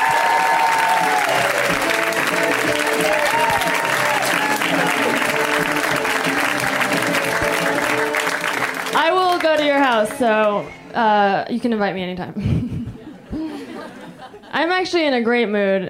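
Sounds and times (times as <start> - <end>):
audience applause for a comedian: 0.0 - 10.6
speech: 9.8 - 12.6, 14.6 - 15.8
laughter: 12.4 - 14.6.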